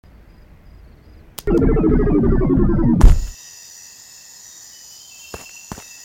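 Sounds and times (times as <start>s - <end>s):
shrink ray effect: 1.4s - 3.4s.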